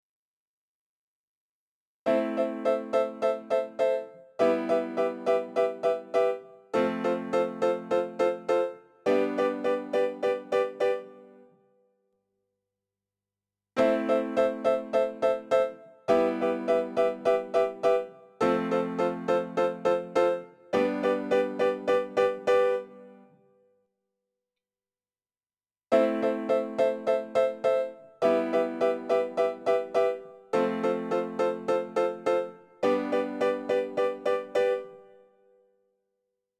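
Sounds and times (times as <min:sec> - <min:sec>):
piano: 0:02.1 - 0:11.8, 0:13.8 - 0:23.6, 0:25.9 - 0:35.6.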